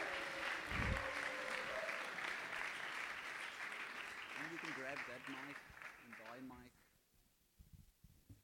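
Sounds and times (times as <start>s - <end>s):
audience applause at a church discussion evening: 0.0s - 6.7s.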